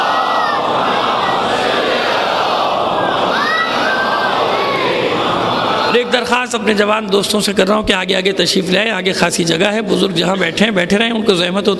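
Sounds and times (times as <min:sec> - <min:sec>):
large gathering reciting a salawat in unison: 0:00.0 - 0:06.3
speech: 0:06.0 - 0:11.7.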